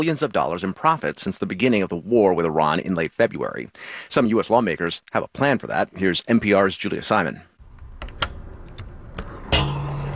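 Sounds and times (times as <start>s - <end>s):
speech: 0.0s - 8.1s
sharp clicks and knocks: 7.7s - 10.0s.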